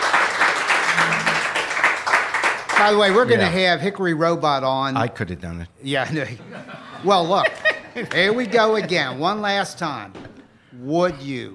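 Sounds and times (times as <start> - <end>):
group applause: 0.0 - 3.7, 7.3 - 9.1
speech: 2.8 - 10.2, 10.8 - 11.5
laughter: 6.1 - 9.7.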